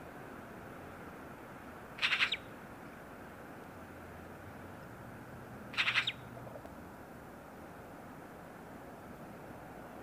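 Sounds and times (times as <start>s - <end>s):
Eurasian magpie Pica pica giving harsh rattling chatter: 2.0s - 2.4s, 5.8s - 6.2s.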